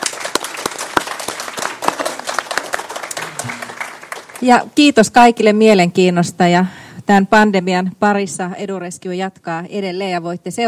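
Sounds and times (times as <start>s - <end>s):
audience applause: 0.0s - 4.5s
speech: 4.4s - 10.6s.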